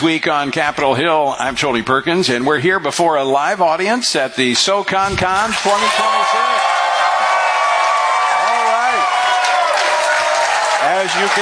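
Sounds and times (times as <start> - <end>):
speech: 0.0 - 6.7, 11.0 - 11.3
live audience applause and cheering at a political conference: 5.3 - 11.3.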